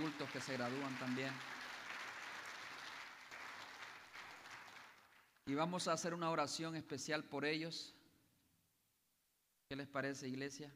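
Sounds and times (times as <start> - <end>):
audience clapping: 0.0 - 5.4
speech: 0.1 - 1.6, 5.5 - 8.0, 9.7 - 10.7.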